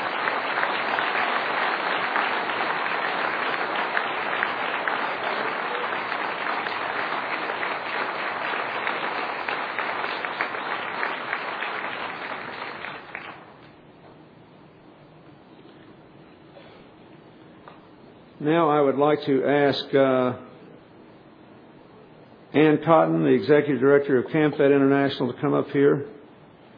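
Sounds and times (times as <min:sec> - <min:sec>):
crowd audience applause: 0:00.0 - 0:13.6
speech: 0:18.4 - 0:20.5, 0:22.6 - 0:26.2.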